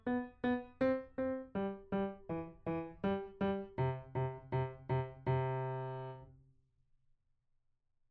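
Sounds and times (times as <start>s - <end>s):
piano: 0.0s - 6.3s.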